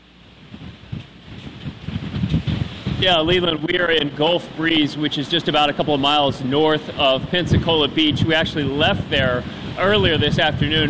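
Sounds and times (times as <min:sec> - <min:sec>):
storm wind blowing on outdoor microphone: 0:00.3 - 0:10.8
speech: 0:03.0 - 0:10.8.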